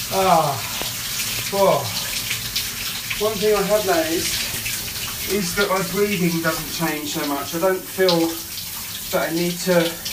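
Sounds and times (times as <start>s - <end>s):
shower water running: 0.0s - 10.1s
person groaning: 0.1s - 0.7s
speech: 0.1s - 0.8s, 1.5s - 2.1s, 3.2s - 4.4s, 5.3s - 8.5s, 9.1s - 10.1s.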